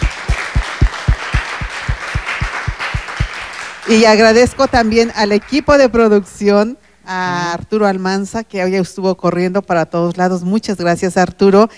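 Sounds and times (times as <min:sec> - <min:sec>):
audience applause: 0:00.0 - 0:05.7
speech: 0:03.9 - 0:11.7.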